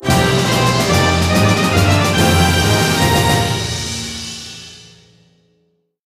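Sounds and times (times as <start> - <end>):
quest complete jingle: 0.0 - 4.0.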